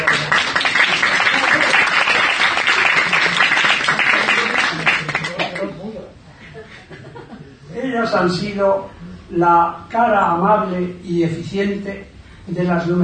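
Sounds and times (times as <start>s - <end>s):
crowd applauding: 0.0s - 5.7s
laughter: 0.0s - 7.7s
speech: 8.2s - 13.0s.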